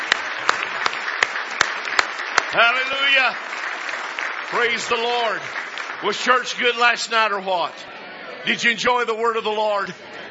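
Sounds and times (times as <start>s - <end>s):
worshippers at a church camp meeting clapping hands in praise: 0.0s - 7.7s
speech: 2.5s - 3.6s, 4.5s - 10.1s.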